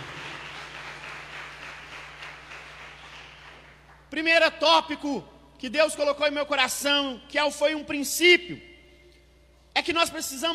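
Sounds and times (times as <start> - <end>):
audience applause: 0.0 - 3.9
speech: 4.1 - 8.7, 9.8 - 10.5.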